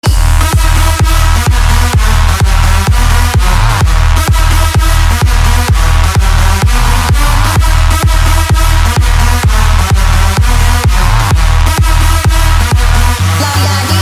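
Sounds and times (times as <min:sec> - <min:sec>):
phone ringtone trap mix: 0:00.0 - 0:14.0.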